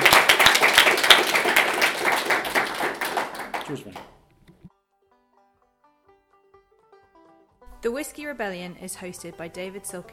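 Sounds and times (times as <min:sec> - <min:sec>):
audience applause at the end of a live talk event on the midterm elections: 0:00.0 - 0:04.2
speech: 0:03.7 - 0:04.0, 0:07.8 - 0:10.1.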